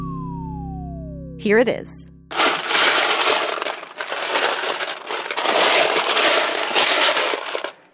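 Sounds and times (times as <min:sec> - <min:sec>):
speech: 0:01.4 - 0:02.0
plastic Lego bricks rummaged through by hand: 0:02.3 - 0:07.9.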